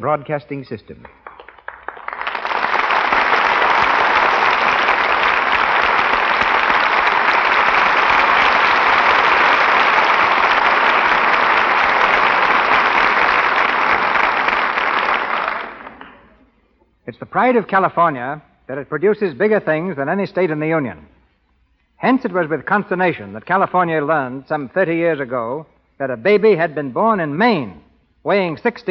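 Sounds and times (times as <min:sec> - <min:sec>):
speech: 0:00.0 - 0:01.3, 0:17.2 - 0:21.1, 0:22.0 - 0:28.8
studio audience applause: 0:01.0 - 0:16.3.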